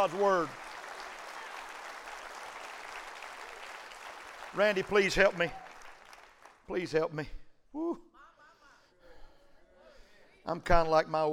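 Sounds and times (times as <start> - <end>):
speech: 0.0 - 0.6, 4.5 - 5.6, 6.7 - 8.1, 10.4 - 11.3
audience clapping hands: 0.0 - 7.0.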